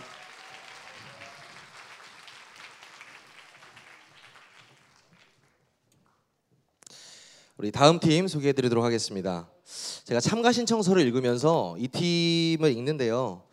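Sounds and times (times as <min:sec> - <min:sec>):
audience applause: 0:00.0 - 0:05.7
speech: 0:07.6 - 0:13.5.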